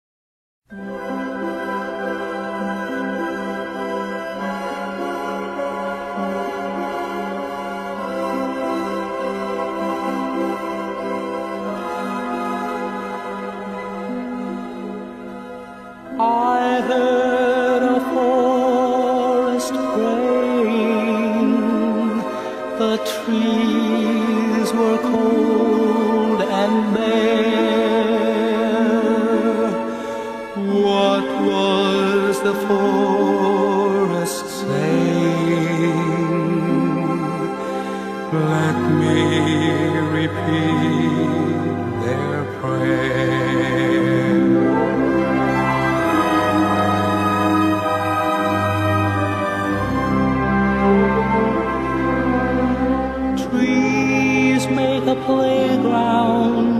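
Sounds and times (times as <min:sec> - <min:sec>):
Christian hymn: 0:00.8 - 0:56.7.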